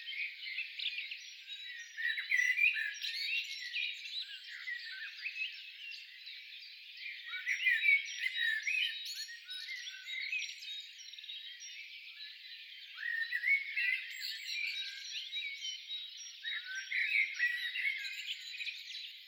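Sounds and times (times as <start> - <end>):
blackbird chirping: 0.0 - 19.2.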